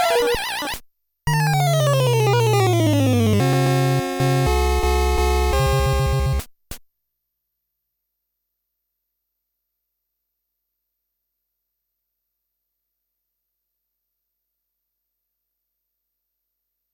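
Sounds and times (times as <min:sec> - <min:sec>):
Famicom main channels sound test: 0:00.0 - 0:00.7, 0:01.3 - 0:06.4.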